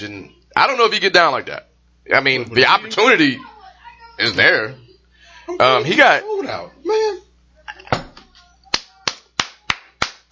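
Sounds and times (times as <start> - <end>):
speech: 0.0 - 3.5, 4.2 - 4.8, 5.5 - 7.2
clap sound effect: 8.7 - 10.2.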